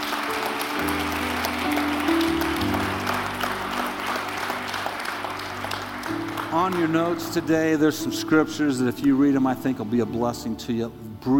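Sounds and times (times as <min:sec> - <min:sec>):
audience applause: 0:00.0 - 0:08.0
sustained organ or keyboard chords: 0:00.0 - 0:11.3
speech: 0:06.6 - 0:11.3.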